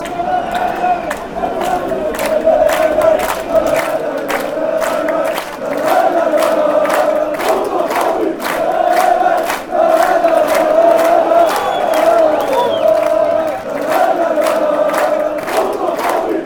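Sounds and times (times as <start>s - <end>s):
football fans chanting: 0.0s - 16.4s.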